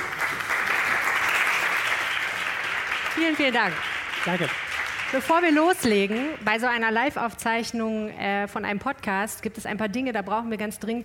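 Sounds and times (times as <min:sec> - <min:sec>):
live audience applause: 0:00.0 - 0:06.5
speech: 0:03.2 - 0:11.0.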